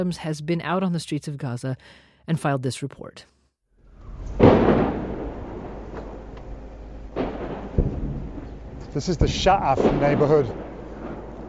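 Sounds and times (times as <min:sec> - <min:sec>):
speech: 0:00.0 - 0:03.4, 0:09.0 - 0:10.7
rocket strikes booming in the Sha'af neighborhood near Gaza City: 0:03.8 - 0:11.4
sharp short rocket blast in the Sha'af neighborhood near Gaza City: 0:03.9 - 0:11.4.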